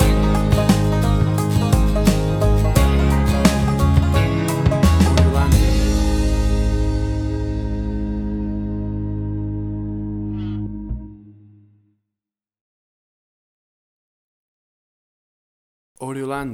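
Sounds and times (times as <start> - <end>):
bumping country jive music stinger: 0.0 - 10.4.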